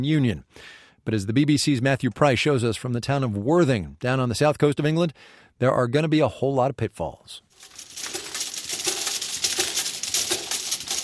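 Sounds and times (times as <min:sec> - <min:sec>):
speech: 0:00.0 - 0:07.8
thumbnail-sized glass vials going through labelling machine: 0:07.6 - 0:11.0.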